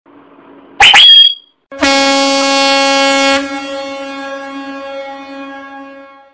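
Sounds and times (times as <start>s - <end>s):
horn: 0.8s - 6.3s.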